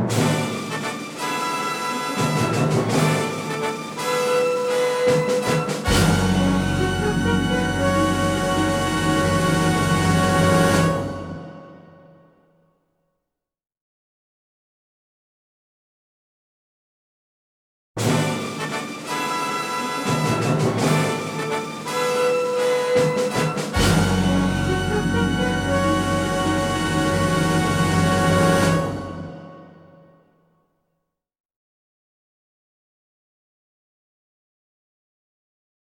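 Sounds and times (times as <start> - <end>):
instrumental fanfare: 0.1 - 12.0, 18.0 - 30.0.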